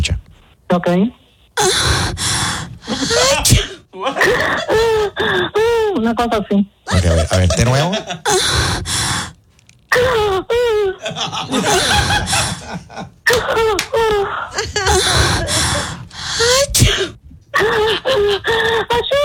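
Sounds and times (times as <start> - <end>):
speech: 0.7 - 2.2, 3.0 - 9.0, 10.0 - 19.2
snickering and chuckling: 2.8 - 6.0, 6.9 - 8.9, 10.2 - 16.1, 17.6 - 19.2
person sneezing: 2.9 - 4.7, 14.2 - 17.2.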